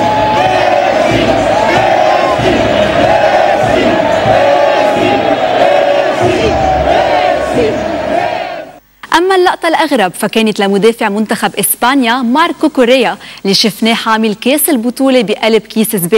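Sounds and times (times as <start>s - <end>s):
stadium crowd chanting Lionel Messi's name: 0.0s - 8.8s
speech: 9.5s - 16.1s.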